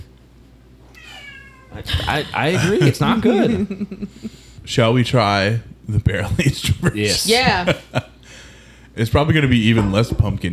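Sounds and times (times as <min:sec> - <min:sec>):
cat meowing: 0:00.9 - 0:01.8
laughter: 0:01.8 - 0:04.4, 0:06.1 - 0:08.2
speech: 0:01.8 - 0:08.1, 0:09.0 - 0:10.5.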